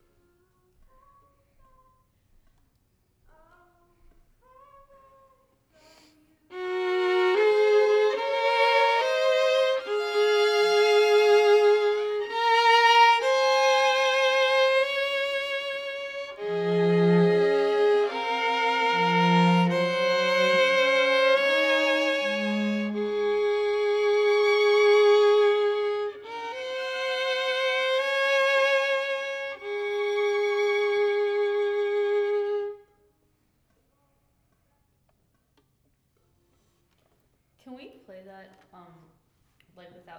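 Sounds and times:
violin: 6.5s - 33.1s.

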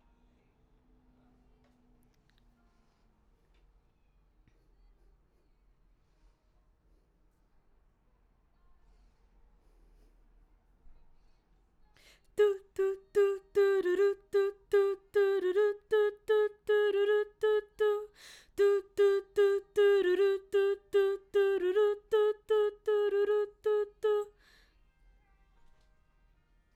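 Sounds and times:
background vocals: 12.3s - 24.5s.

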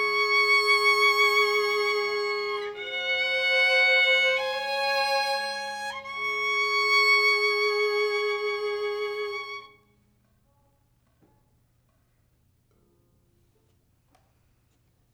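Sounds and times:
violin: 0.0s - 9.9s.

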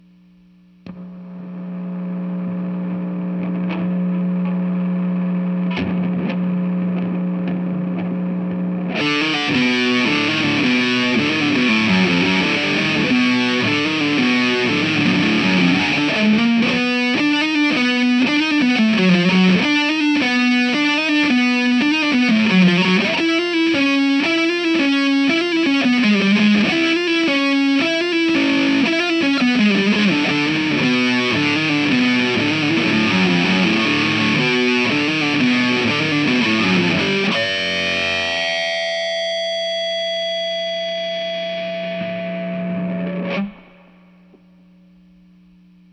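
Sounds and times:
guitar: 0.0s - 45.9s.

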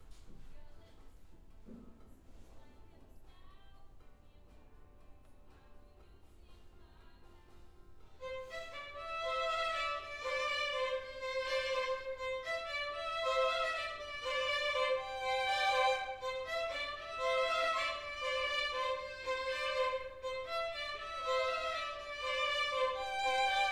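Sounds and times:
cello: 8.2s - 23.6s.

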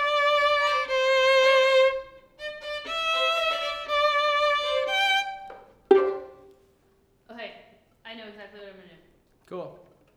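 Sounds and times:
violin: 0.0s - 6.8s.

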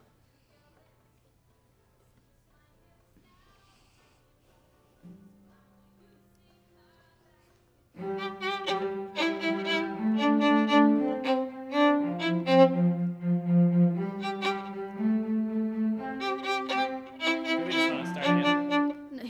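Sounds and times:
violin: 8.0s - 19.2s.

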